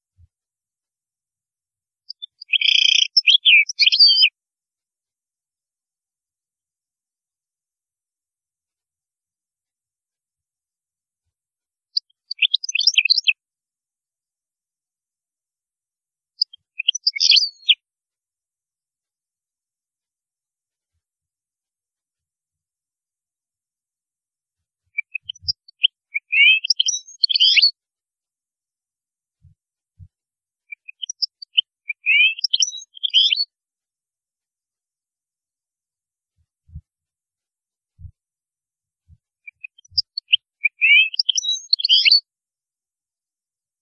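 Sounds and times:
European goldfinch twittering song: 2.1s - 4.3s, 12.0s - 13.4s, 16.4s - 17.8s, 25.0s - 27.8s, 30.7s - 33.5s, 39.5s - 42.2s.

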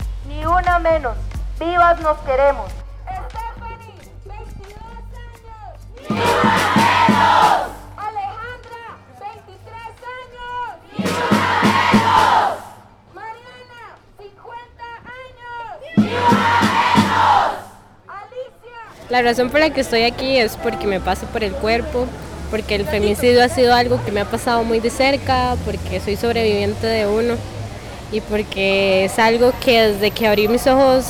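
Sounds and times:
speech: 0.6s - 2.8s, 19.1s - 31.0s
protest crowd chanting in the street: 5.9s - 8.0s, 10.4s - 13.7s, 15.1s - 18.0s, 18.9s - 31.0s.

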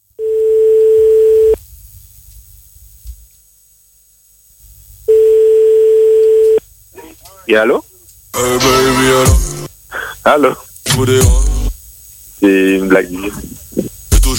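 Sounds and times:
faint low telephone line hiss: 0.1s - 14.3s
telephone ringback tone: 0.2s - 1.6s, 5.1s - 6.6s
speech: 7.5s - 9.5s, 10.3s - 11.4s, 12.9s - 13.5s.

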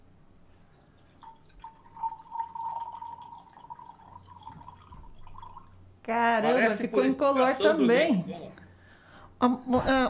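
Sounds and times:
liquid being poured: 0.5s - 5.8s
speech: 6.1s - 8.6s, 9.4s - 10.0s.

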